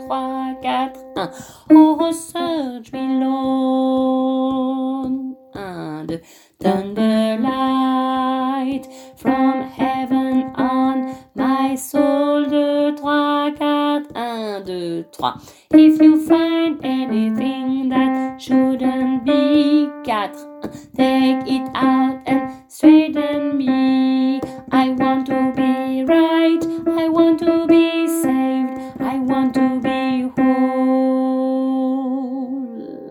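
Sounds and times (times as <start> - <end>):
soprano singing: 0.0 - 33.0.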